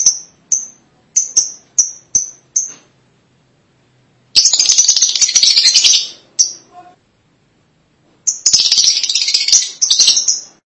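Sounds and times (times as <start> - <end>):
lovebirds chattering: 0.0 - 2.9, 4.3 - 7.0, 8.2 - 10.5.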